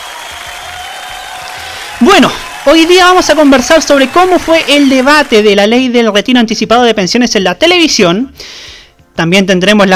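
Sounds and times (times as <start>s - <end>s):
applause sound effect: 0.0s - 5.6s
speech: 2.0s - 9.9s.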